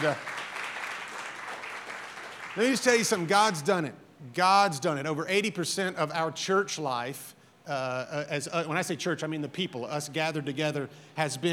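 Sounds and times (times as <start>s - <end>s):
speech: 0.0s - 0.3s, 2.6s - 11.5s
audience clapping: 0.0s - 3.7s.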